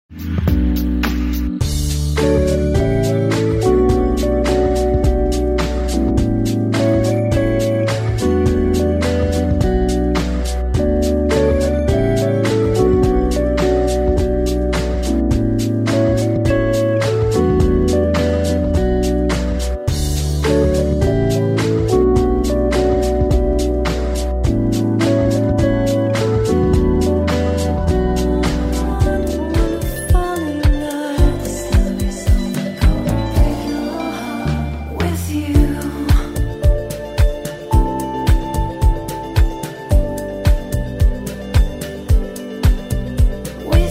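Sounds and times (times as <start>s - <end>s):
soothing early morning spa music: 0.6s - 43.9s.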